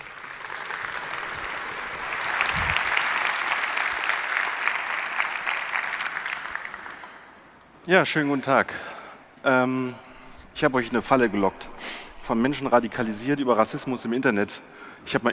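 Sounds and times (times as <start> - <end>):
audience applause: 0.0 - 7.6
speech: 7.9 - 15.3.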